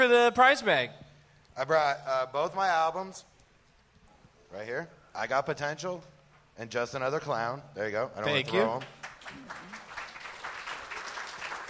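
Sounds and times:
speech: 0.0s - 1.0s, 1.6s - 3.3s, 4.5s - 9.8s
audience applause: 8.7s - 11.6s.

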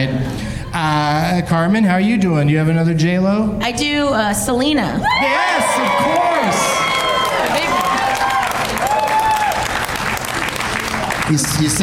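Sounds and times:
speech: 0.0s - 6.8s, 11.3s - 11.8s
audience applause: 5.3s - 11.8s.

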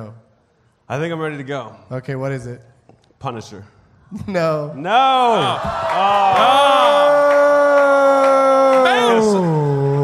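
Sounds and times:
speech: 0.9s - 7.0s
audience booing: 4.9s - 10.0s.

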